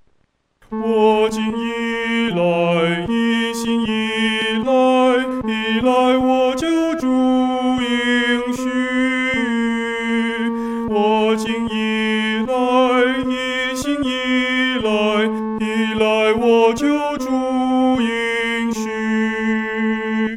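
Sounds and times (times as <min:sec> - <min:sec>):
solo singing third voice: 0:00.7 - 0:20.3.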